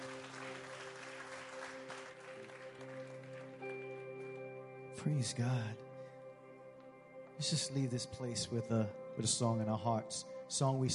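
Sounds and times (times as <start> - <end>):
audience applause: 0.0 - 4.4
sustained instrumental chord: 0.0 - 10.9
speech: 5.0 - 5.9, 7.4 - 10.9.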